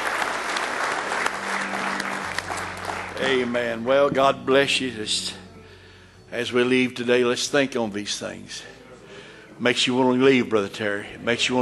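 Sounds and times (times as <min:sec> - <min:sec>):
audience clapping hands in praise: 0:00.0 - 0:03.8
speech: 0:03.2 - 0:05.4, 0:06.3 - 0:08.8, 0:09.6 - 0:11.6.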